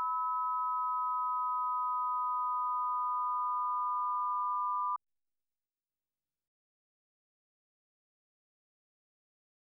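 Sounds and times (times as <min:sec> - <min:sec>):
aural combination tones auditory demonstration: 0:00.1 - 0:05.0.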